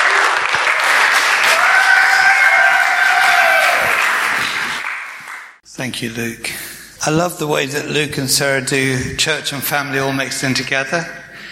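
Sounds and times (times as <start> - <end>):
audience applause: 0.0 - 5.6
speech: 5.8 - 11.2.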